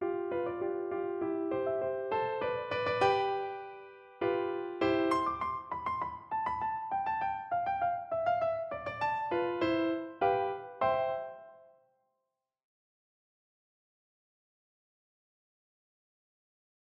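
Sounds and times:
piano piece: 0.0s - 11.9s.

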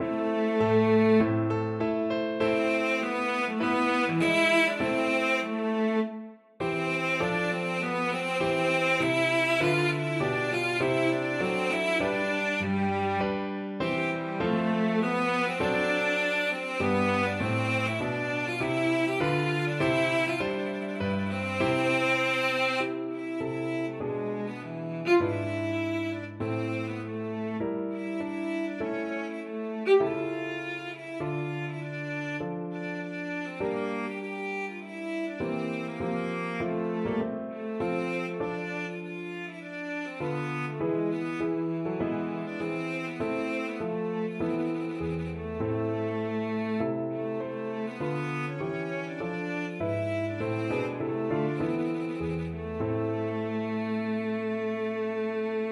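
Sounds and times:
violoncello: 0.0s - 55.7s.

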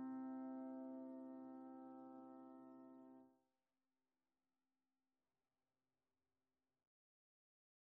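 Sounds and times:
piano duet of a classical largo: 0.0s - 3.2s.

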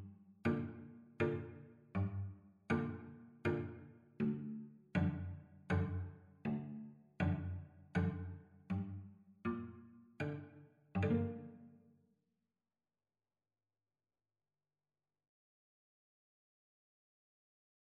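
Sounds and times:
violin and cello duet: 0.0s - 11.8s.

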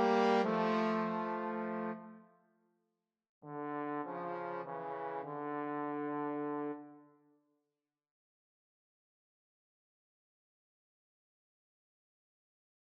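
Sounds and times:
trombone trio: 0.0s - 2.0s, 3.5s - 6.8s.

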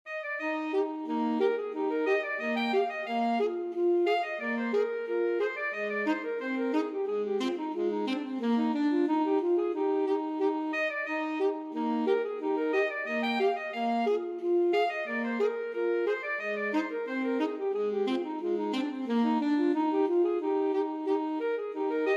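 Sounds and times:
alto saxophone duet: 0.1s - 22.1s.

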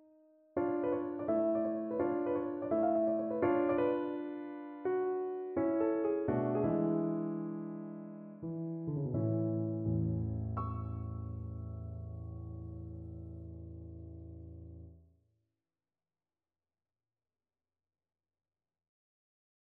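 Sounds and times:
piano: 0.0s - 15.0s.

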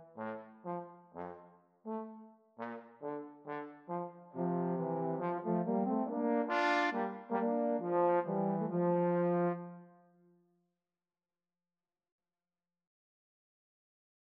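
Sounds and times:
trombone trio playing: 0.1s - 9.6s.

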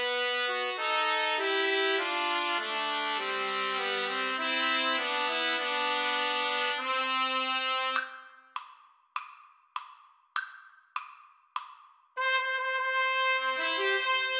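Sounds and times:
trumpet trio playing a wedding march: 0.0s - 8.2s, 12.2s - 14.3s.

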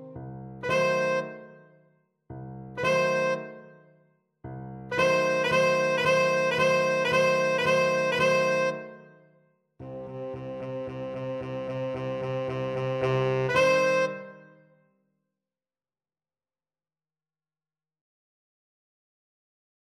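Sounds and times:
tenor saxophone: 0.6s - 1.6s, 2.8s - 3.7s, 4.9s - 9.0s, 9.8s - 14.5s.

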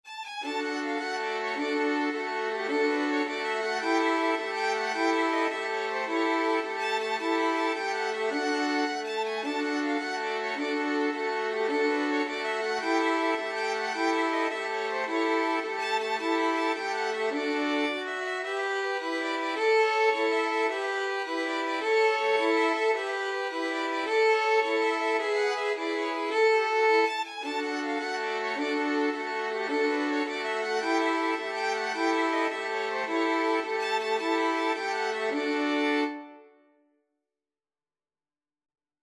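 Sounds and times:
violin quartet playing: 0.1s - 36.5s.

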